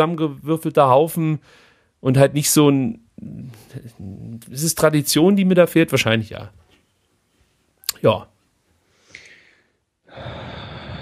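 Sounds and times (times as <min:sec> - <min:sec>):
speech: 0:00.0 - 0:06.6, 0:08.0 - 0:08.3
heavy puffing breath through the nose: 0:01.4 - 0:02.0, 0:08.8 - 0:11.0.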